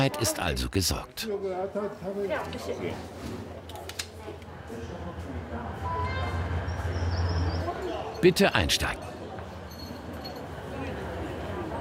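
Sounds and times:
speech: 0.0 - 3.8, 8.2 - 9.1
voices murmuring: 0.0 - 11.7
mountain railway train rumbling with a steady low drone: 4.4 - 11.7.

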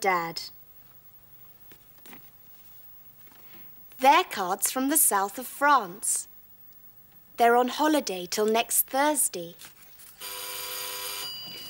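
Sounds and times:
speech: 0.0 - 0.6, 4.0 - 6.3, 7.4 - 10.4
doorbell ringing: 10.2 - 11.6.

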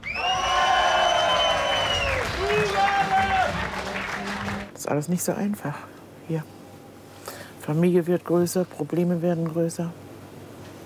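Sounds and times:
high gliding whoops: 0.0 - 3.7
audience applause and cheering after a handshake: 0.0 - 4.7
speech: 4.9 - 6.6, 7.7 - 10.0.

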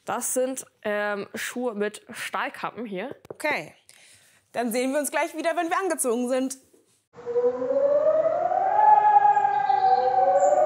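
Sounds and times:
speech: 0.1 - 3.8, 4.5 - 7.7
fire station alarm siren: 7.1 - 10.6.

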